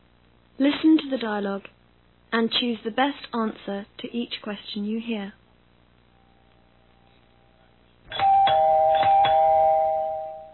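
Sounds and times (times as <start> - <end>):
speech: 0.6 - 5.4
doorbell chiming ding-dong: 8.1 - 10.5.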